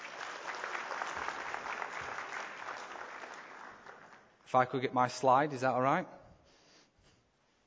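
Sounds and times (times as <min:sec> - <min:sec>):
round of applause: 0:00.0 - 0:04.4
speech: 0:04.5 - 0:06.2.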